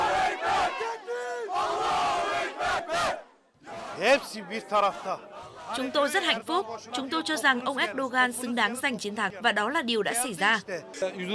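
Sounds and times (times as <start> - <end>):
Erdogan supporters shouting and chanting in the streets of Turkey: 0.0 - 7.8
speech: 4.0 - 11.3.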